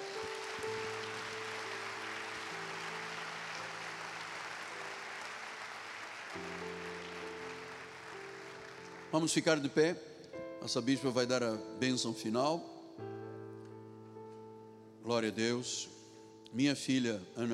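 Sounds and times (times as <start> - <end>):
audience applauding: 0.0 - 9.6
sustained low keyboard chords: 0.0 - 17.5
speech: 9.1 - 13.1, 15.1 - 17.5.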